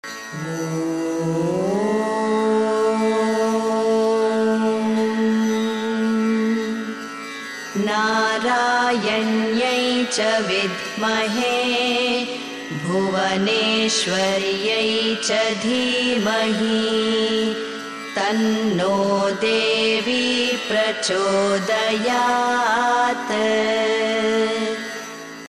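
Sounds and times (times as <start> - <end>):
devotional chanting: 0.0 - 7.1, 7.8 - 25.2.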